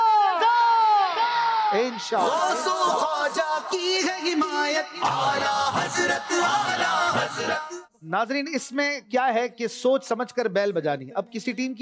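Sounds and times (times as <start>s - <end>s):
studio audience at a team competition show shouting a slogan: 0.0s - 7.9s
speech: 1.7s - 11.7s.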